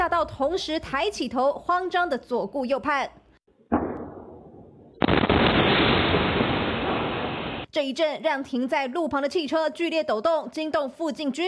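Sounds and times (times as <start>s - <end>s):
speech: 0.2s - 3.2s, 7.7s - 11.4s
huge explosion booms: 3.7s - 7.7s.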